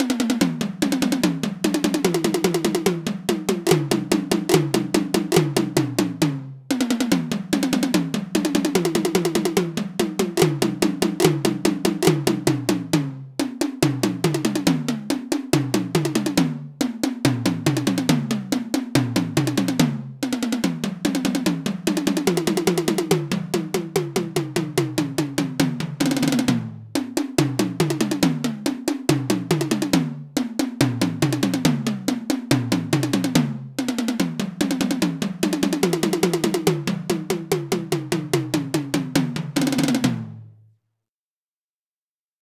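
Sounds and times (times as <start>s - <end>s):
melodic tom drum: 0.0s - 40.6s.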